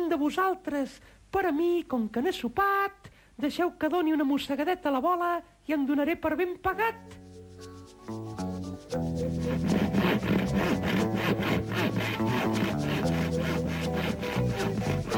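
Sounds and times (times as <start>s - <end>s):
speech: 0.1s - 12.6s
saw cutting back and forth: 9.2s - 15.1s.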